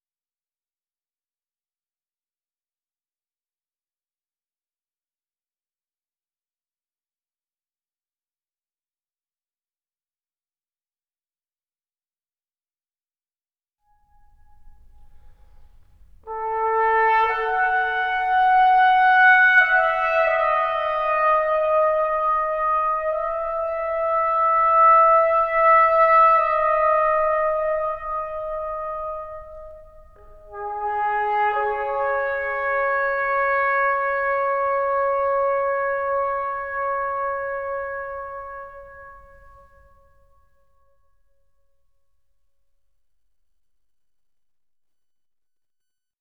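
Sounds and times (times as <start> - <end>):
trumpet solo: 14.2 - 40.4.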